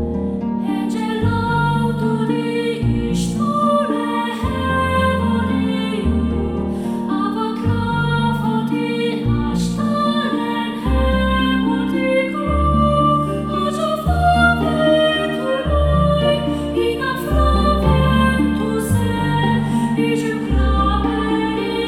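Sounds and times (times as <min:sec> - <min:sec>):
card game field background music: 0:00.2 - 0:21.8.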